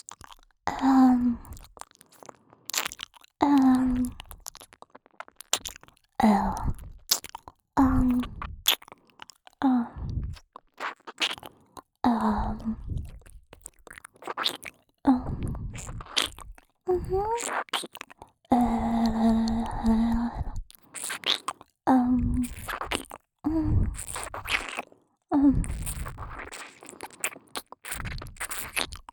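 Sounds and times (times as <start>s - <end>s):
gentle ear licking in the right ear for sleep: 0.0s - 25.0s, 25.6s - 29.1s.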